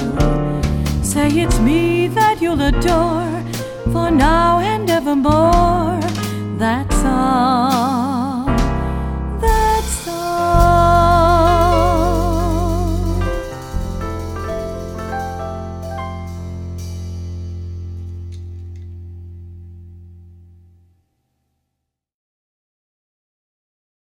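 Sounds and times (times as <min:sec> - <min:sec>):
jazz singer with quartet: 0:00.0 - 0:15.9.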